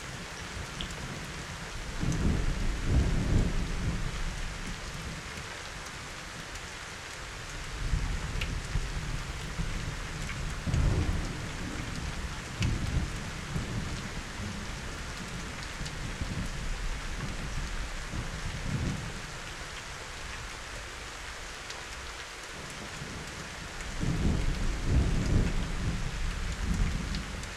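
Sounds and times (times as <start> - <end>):
thunderstorm: 0.0 - 5.2, 7.8 - 19.4, 23.9 - 27.4.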